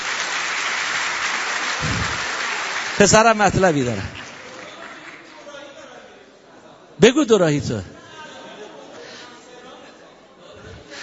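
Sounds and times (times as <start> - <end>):
audience clapping: 0.0 - 5.6
speech: 3.0 - 4.2, 7.0 - 7.9.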